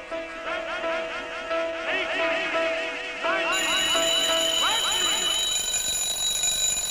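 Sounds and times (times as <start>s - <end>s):
orchestral song in a studio recording: 0.0s - 5.4s
alarm clock ringing: 3.5s - 6.8s.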